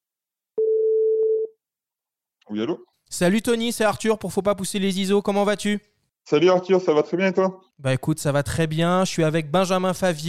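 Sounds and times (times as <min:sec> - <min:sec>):
telephone dial tone of outgoing call: 0:00.6 - 0:01.6
speech: 0:02.5 - 0:10.2.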